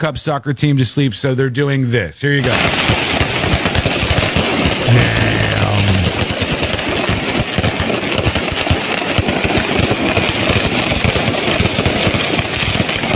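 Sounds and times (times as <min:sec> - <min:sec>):
speech: 0:00.0 - 0:03.2
fireworks outside a hotel at night: 0:02.5 - 0:04.8, 0:05.6 - 0:13.1.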